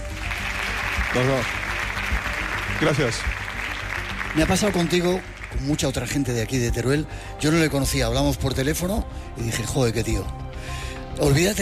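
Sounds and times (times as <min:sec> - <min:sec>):
applause at a gathering in Teruel: 0:00.0 - 0:06.6
speech: 0:01.2 - 0:01.6, 0:02.8 - 0:03.4, 0:04.4 - 0:10.4, 0:11.2 - 0:11.6.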